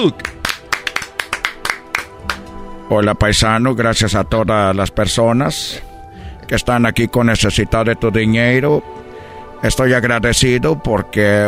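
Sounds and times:
speech: 0.0 - 0.4, 2.9 - 5.9, 6.5 - 9.0, 9.6 - 11.4
applause: 0.0 - 2.6.

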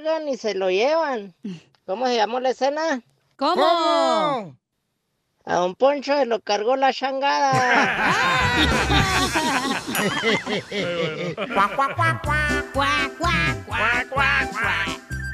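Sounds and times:
speech: 0.0 - 4.6, 5.5 - 15.1
laughter: 7.5 - 15.0
duck quacking sound effect: 11.6 - 15.0.

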